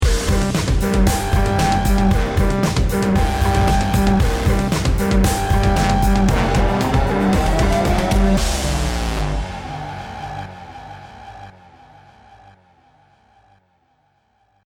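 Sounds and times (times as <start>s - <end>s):
ten second bomb timer countdown: 0.0s - 9.8s.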